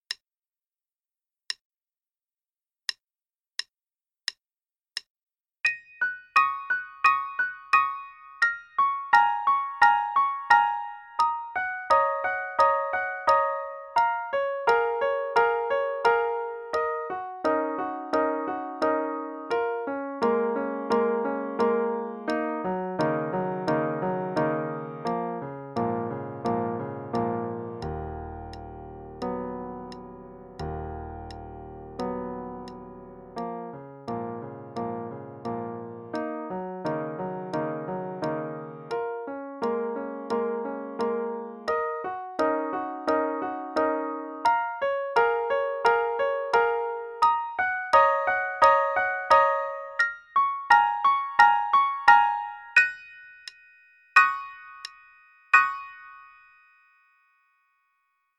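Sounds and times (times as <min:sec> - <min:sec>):
improvised music: 0:05.6 - 0:53.0.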